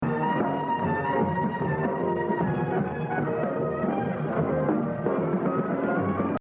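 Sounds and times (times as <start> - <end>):
jazz drumming exercise: 0.0 - 6.4.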